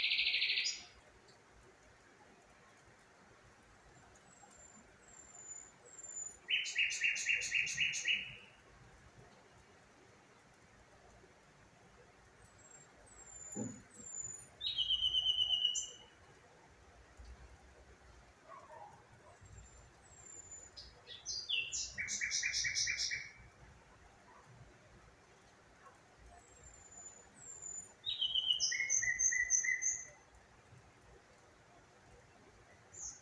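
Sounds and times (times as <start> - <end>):
birds singing: 0.0 - 1.0, 4.0 - 8.6, 12.4 - 16.3, 18.5 - 23.5, 26.3 - 30.4, 32.7 - 33.1.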